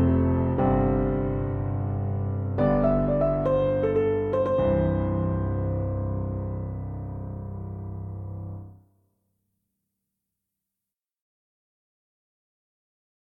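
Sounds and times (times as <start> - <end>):
piano instrumental: 0.0 - 8.8.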